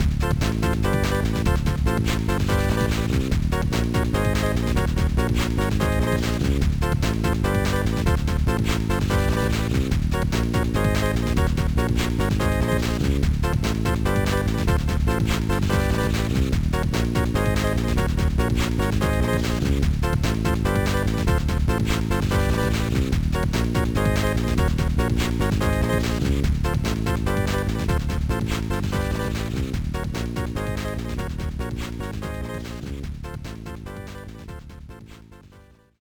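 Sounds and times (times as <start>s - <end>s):
background music: 0.0s - 36.0s.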